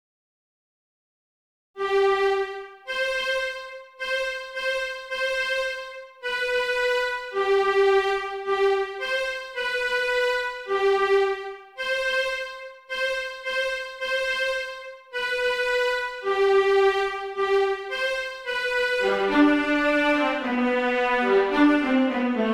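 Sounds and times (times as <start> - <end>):
viola playing: 1.8 - 22.5.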